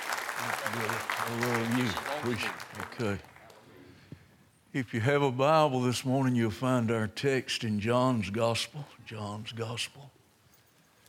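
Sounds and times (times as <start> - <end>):
Baptist church congregation applauding to welcome a visiting preacher: 0.0 - 3.7
speech: 0.4 - 3.3, 4.7 - 10.2.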